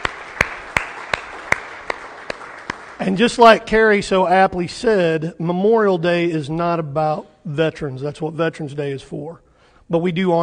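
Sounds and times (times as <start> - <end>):
slow hand claps: 0.0 - 3.1
speech: 3.0 - 10.4.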